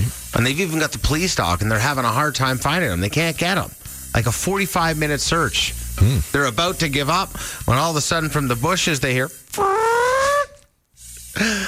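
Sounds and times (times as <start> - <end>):
speech: 0.4 - 10.2, 11.4 - 11.6
fart: 9.5 - 10.7.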